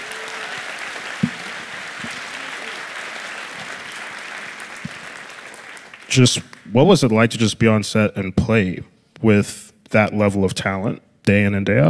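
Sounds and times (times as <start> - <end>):
audience applause for the cast: 0.0 - 6.7
speech: 6.1 - 11.8.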